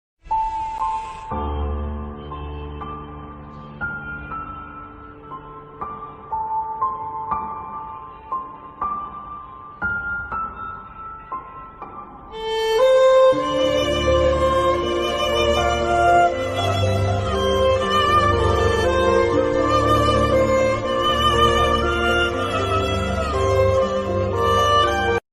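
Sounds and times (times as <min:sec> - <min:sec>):
sad background music ringtone: 0:00.2 - 0:25.2.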